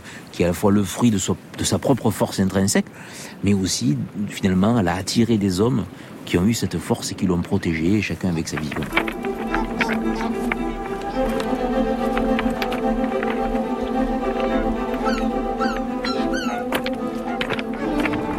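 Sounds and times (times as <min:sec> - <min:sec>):
speech: 0:00.4 - 0:09.3
low rumble of wind: 0:03.6 - 0:18.3
footsteps crunching over pebbles: 0:08.3 - 0:18.3
constant busy murmur of other sounds: 0:08.6 - 0:18.3.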